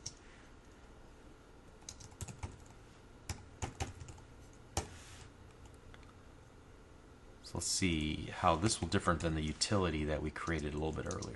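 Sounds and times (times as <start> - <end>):
faint typing of a name on a computer keyboard: 1.8 - 4.2, 10.5 - 11.3
speech: 7.5 - 11.3.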